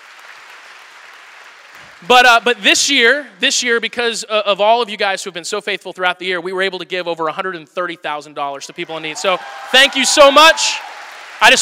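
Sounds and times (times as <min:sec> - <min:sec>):
audience clapping: 0:00.0 - 0:03.2, 0:08.8 - 0:11.6
speech: 0:02.0 - 0:11.6.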